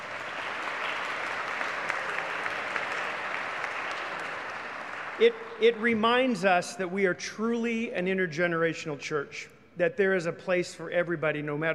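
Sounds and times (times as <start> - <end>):
round of applause: 0.0 - 6.0
speech: 5.2 - 11.7.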